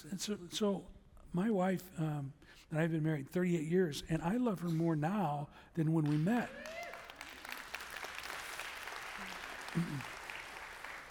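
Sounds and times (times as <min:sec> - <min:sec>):
speech: 0:00.0 - 0:06.8, 0:09.8 - 0:10.1
audience applause: 0:06.1 - 0:11.0.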